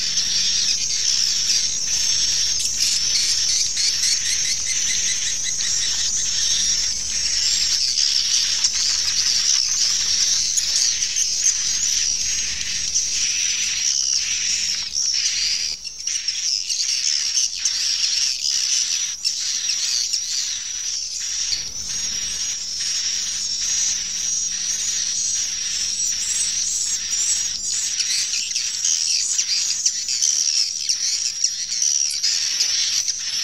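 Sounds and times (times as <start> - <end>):
swiftlets twittering in chorus: 0.0 - 33.4.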